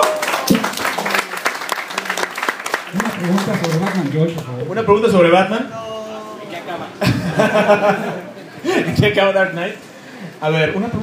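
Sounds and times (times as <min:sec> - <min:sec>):
audience applause at a comics event for Spider-Man's 50th anniversary: 0:00.0 - 0:04.4
speech: 0:03.2 - 0:05.8, 0:06.7 - 0:11.0
laughter: 0:07.0 - 0:09.1.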